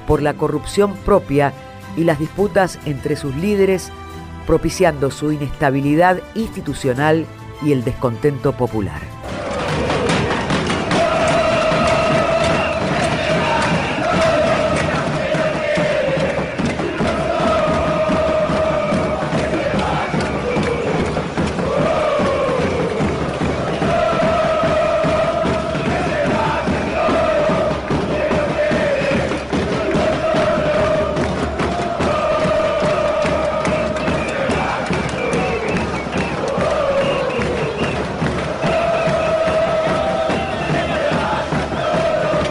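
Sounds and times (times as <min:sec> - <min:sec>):
speech: 0:00.1 - 0:09.2
large crowd shouting together: 0:09.2 - 0:42.4.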